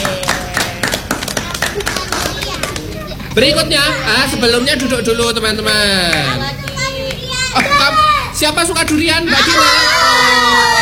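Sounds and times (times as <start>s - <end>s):
audience clapping: 0.0s - 3.0s
speech: 3.4s - 6.6s, 7.6s - 10.7s.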